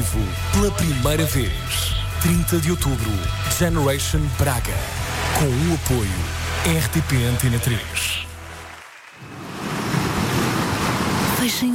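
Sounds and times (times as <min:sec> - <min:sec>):
speech: 0:00.0 - 0:08.2
sea waves surf: 0:04.8 - 0:11.7.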